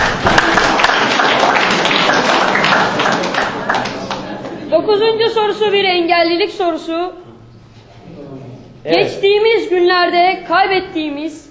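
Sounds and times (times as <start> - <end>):
audience clapping for teams at a Turkish quiz show: 0.0 - 4.6
speech: 5.4 - 7.3, 8.8 - 11.4.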